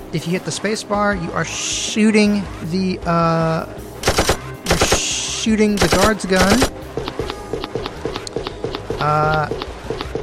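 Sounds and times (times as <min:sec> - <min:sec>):
speech: 0:00.1 - 0:04.3, 0:05.4 - 0:06.8, 0:09.0 - 0:09.7
footsteps of a character walking in a video game: 0:05.7 - 0:10.2.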